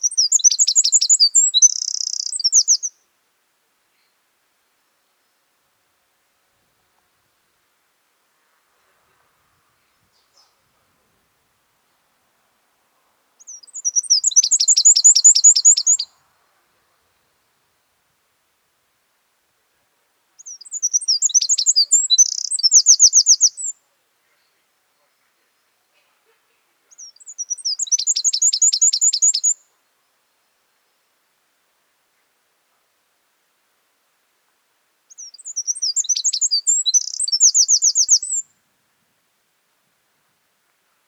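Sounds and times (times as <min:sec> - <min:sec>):
Eurasian wren singing trills: 0:00.0 - 0:03.0, 0:13.4 - 0:16.1, 0:20.4 - 0:23.8, 0:26.9 - 0:29.6, 0:35.1 - 0:38.5.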